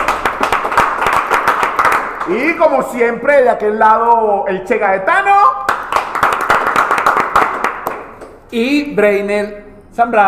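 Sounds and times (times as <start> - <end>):
audience applause: 0.0 - 2.4, 5.7 - 8.2
speech: 2.3 - 5.6, 8.5 - 10.2.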